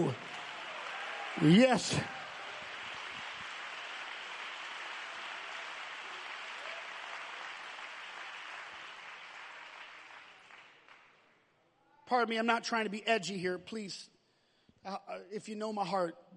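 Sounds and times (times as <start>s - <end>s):
audience clapping: 0.0s - 11.4s
speech: 1.4s - 2.2s, 12.1s - 14.2s, 14.8s - 16.3s.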